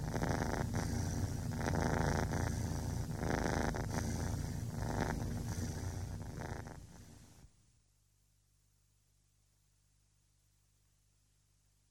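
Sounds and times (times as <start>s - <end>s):
cat purring: 0.0s - 7.4s.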